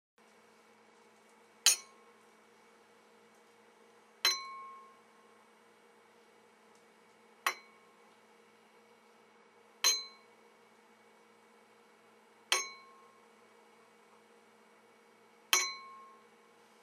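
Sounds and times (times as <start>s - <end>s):
glass clink: 1.7s - 2.0s, 4.3s - 5.0s, 9.8s - 10.3s, 12.5s - 13.1s, 15.6s - 16.2s.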